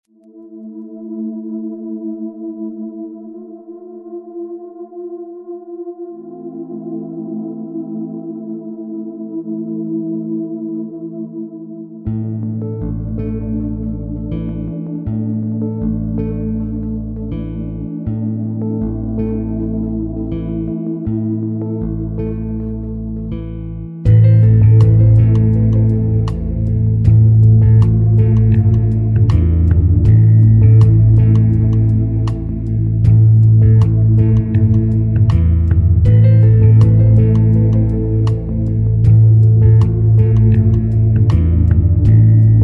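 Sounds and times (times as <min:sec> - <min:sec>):
lounge remix: 0:12.2 - 0:42.6.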